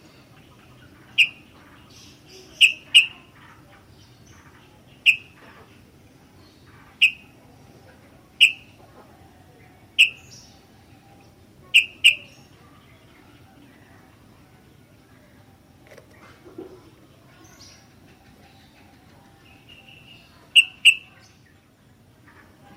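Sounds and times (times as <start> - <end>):
sooty-headed bulbul chip calls: 0.2 - 5.5, 6.8 - 7.4, 8.4 - 8.9, 9.9 - 12.5, 17.6 - 21.4.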